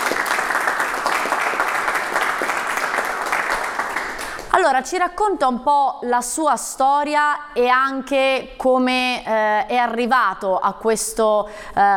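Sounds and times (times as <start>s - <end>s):
studio audience applause: 0.0s - 4.6s
speech: 4.7s - 11.9s.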